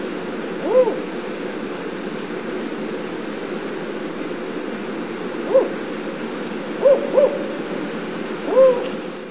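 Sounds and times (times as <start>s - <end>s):
Spotted Owl giving low hollow hoots: 0.6s - 1.2s, 5.4s - 5.8s, 6.8s - 9.1s.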